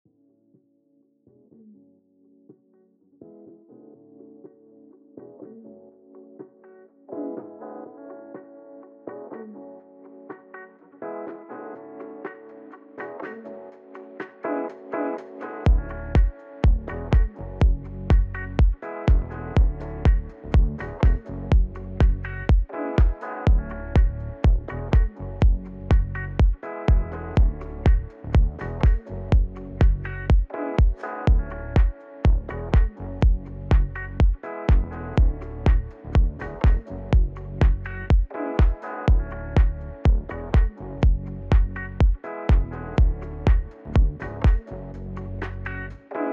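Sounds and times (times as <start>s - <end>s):
French house music mix: 7.2s - 46.3s.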